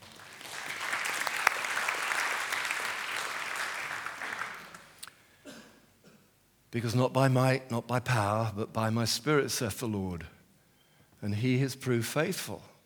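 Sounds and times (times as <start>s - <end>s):
audience clapping: 0.0s - 5.0s
speech: 6.7s - 10.4s, 11.2s - 12.7s.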